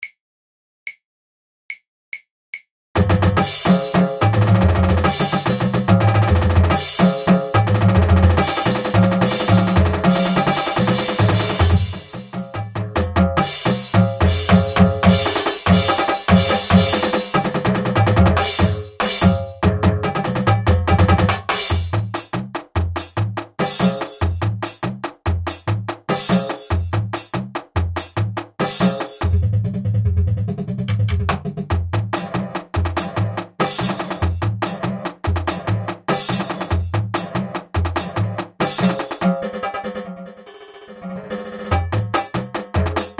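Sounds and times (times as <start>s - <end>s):
drums: 3.0s - 40.4s, 41.1s - 43.1s.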